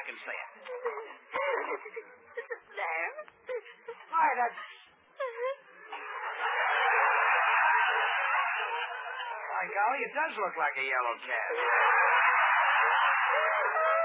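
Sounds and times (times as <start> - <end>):
speech: 0.2 - 1.3, 4.3 - 4.8, 10.0 - 12.1
girl crying and sobbing: 0.7 - 2.7, 5.2 - 5.8
laughter: 5.8 - 10.2, 11.2 - 14.0.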